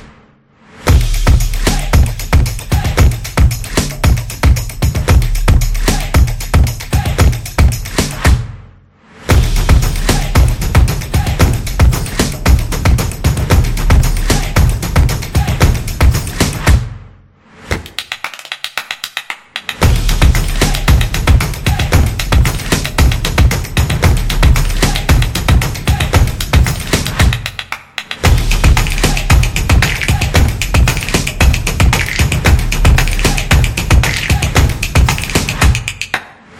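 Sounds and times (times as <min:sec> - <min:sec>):
stomping trailer drums: 0:00.9 - 0:08.7, 0:09.3 - 0:17.1, 0:19.8 - 0:27.6, 0:28.2 - 0:36.0.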